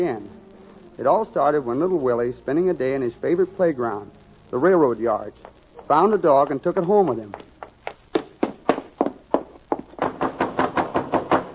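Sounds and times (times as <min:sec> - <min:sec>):
speech: 0:00.0 - 0:00.4, 0:01.0 - 0:07.5
sharp knocking: 0:08.1 - 0:11.5.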